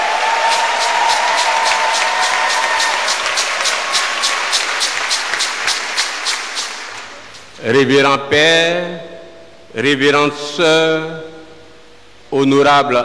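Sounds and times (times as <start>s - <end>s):
church gathering audience clapping in unison: 0.0s - 7.5s
church gathering crowd noise: 0.0s - 7.6s
speech: 7.6s - 9.1s, 9.7s - 11.3s, 12.3s - 13.0s.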